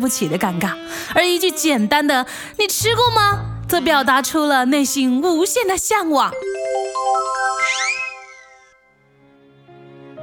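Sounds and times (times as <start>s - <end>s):
speech: 0.0s - 8.0s
phone ringtone: 6.3s - 8.9s.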